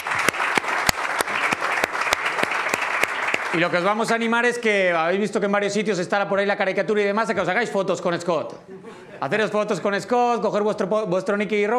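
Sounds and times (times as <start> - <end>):
audience applause: 0.0 - 4.0
speech: 3.5 - 11.7
laughter: 8.7 - 9.7.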